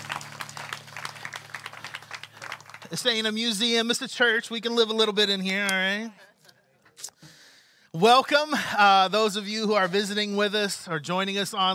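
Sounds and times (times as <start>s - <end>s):
audience clapping: 0.0s - 3.9s
speech: 2.9s - 6.3s, 8.0s - 11.7s.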